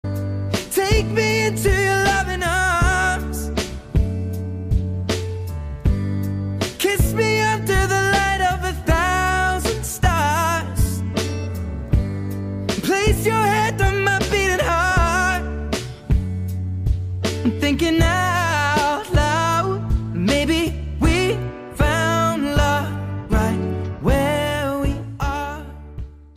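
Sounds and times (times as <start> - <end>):
reggae music: 0.0 - 26.3.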